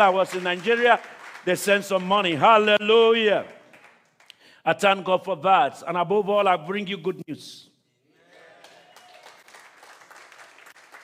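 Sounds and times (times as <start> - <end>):
speech: 0.0 - 3.6, 4.6 - 7.7
audience clapping: 0.0 - 4.5, 8.3 - 11.0.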